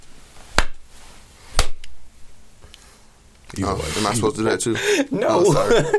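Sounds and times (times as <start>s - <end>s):
hand clap for audio sync test: 0.6s - 0.8s
speech: 3.5s - 5.9s
laughter: 4.7s - 5.9s.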